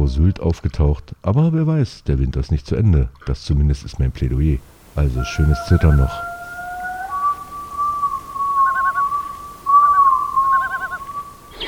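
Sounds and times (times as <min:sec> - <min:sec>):
faint hiss: 0:00.0 - 0:11.6
speech: 0:00.1 - 0:06.3
rare seabird wailing call: 0:04.7 - 0:11.6.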